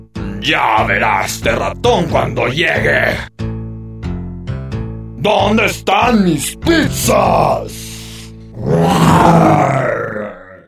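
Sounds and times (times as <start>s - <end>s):
speech: 0.4s - 3.4s, 5.2s - 7.8s, 8.6s - 9.8s
lion growling fiercely: 8.5s - 10.6s.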